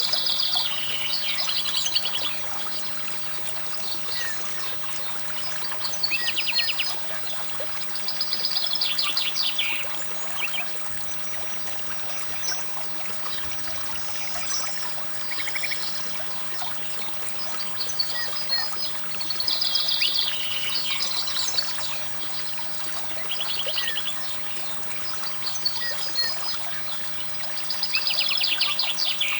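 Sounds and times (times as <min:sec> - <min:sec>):
mountain stream: 0:00.0 - 0:29.3.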